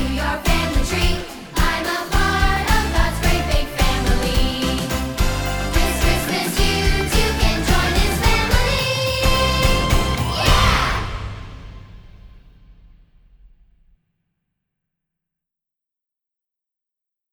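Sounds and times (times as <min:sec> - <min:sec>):
curtain call music: 0:00.0 - 0:12.2.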